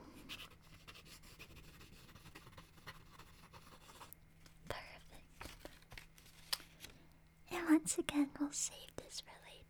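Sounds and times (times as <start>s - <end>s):
pen writing down notes: 0.3s - 4.1s
speech: 7.9s - 8.9s.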